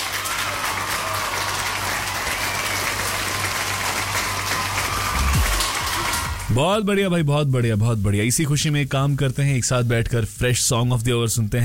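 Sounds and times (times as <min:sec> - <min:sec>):
applause: 0:00.0 - 0:06.6
speech: 0:06.6 - 0:11.6.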